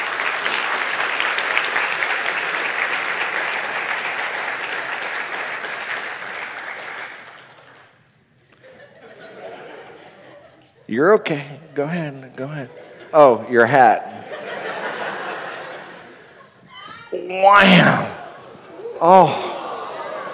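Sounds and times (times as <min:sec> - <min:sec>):
audience clapping: 0:00.0 - 0:08.0
laughter: 0:08.6 - 0:10.7, 0:12.0 - 0:20.3
speech: 0:10.9 - 0:14.3, 0:17.3 - 0:18.1, 0:19.0 - 0:19.4.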